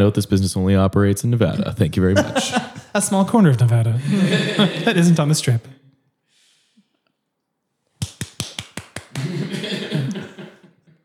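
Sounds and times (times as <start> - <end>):
speech: 0.0 - 5.8
laughter: 2.0 - 3.0, 4.0 - 5.4, 9.1 - 10.9
cards slapped against a hand: 8.0 - 9.2.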